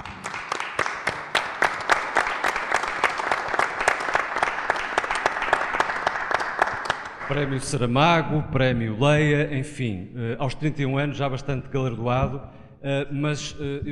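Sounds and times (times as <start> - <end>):
audience applause: 0.0 - 7.6
speech: 7.3 - 13.9.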